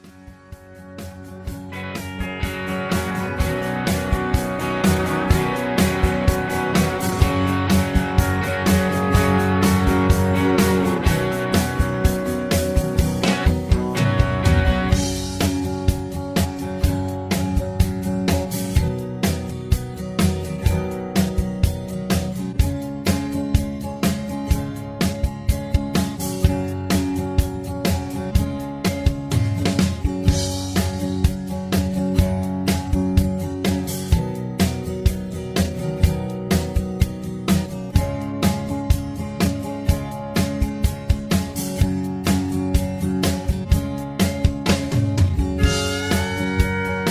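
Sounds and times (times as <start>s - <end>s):
instrumental music: 0.0s - 47.1s.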